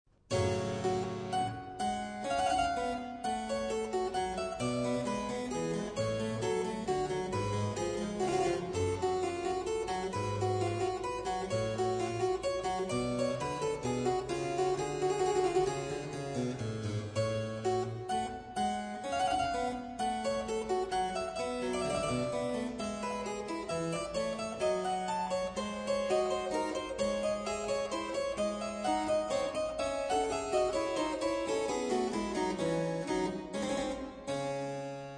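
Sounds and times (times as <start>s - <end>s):
minuet: 0.3s - 35.1s.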